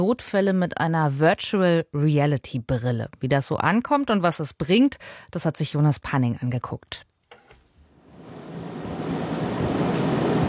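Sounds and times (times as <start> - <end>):
speech: 0.0 - 7.1
air conditioner rattling in a training room of Cologne University Hospital: 7.5 - 10.4.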